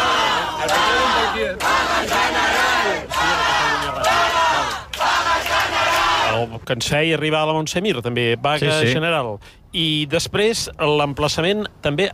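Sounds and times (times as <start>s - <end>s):
group of campers chanting slogans: 0.0s - 6.5s
speech: 6.4s - 12.1s.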